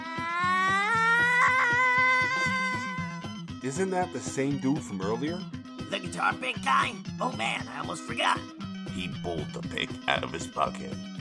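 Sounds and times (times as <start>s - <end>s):
person screaming in terror running by: 0.0s - 3.3s
speech: 3.6s - 11.1s.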